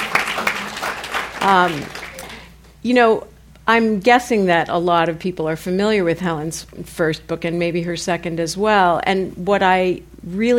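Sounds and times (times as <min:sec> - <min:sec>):
light audience applause: 0:00.0 - 0:02.5
speech: 0:01.4 - 0:02.0, 0:02.8 - 0:10.5.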